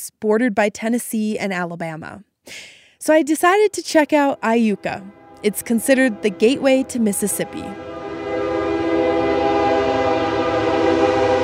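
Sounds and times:
speech: 0.0 - 7.9
train horn blast: 3.9 - 11.4.

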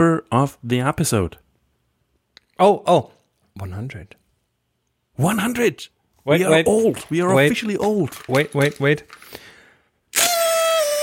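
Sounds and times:
speech: 0.0 - 1.4, 2.6 - 4.2, 5.2 - 9.5
celebratory party whistle: 10.1 - 11.0.

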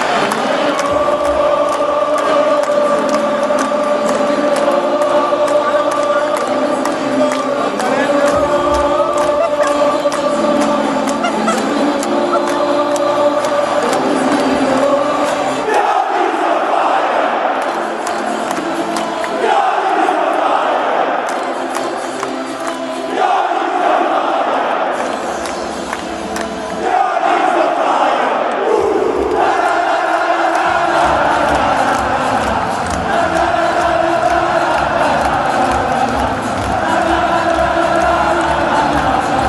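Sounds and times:
football fans chanting in stadium: 0.0 - 39.4
laughter: 7.9 - 13.2.

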